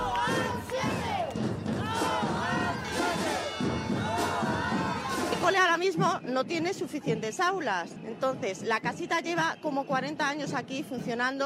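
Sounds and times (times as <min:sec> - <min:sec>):
protesting crowd shouting and chanting in the street: 0:00.0 - 0:11.4
speech: 0:05.9 - 0:11.4.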